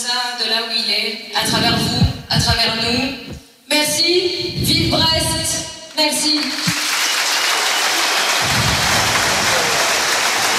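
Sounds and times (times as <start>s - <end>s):
speech: 0.1s - 6.8s
stadium applause: 6.2s - 10.5s.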